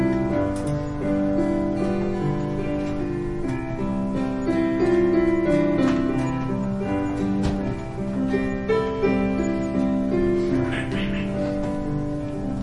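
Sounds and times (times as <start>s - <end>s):
guitar: 0.0s - 12.6s
piano: 0.0s - 12.6s.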